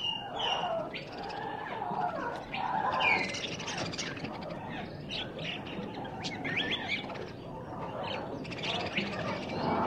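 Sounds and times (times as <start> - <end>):
tropical birds calling in a pet store: 0.0 - 9.8.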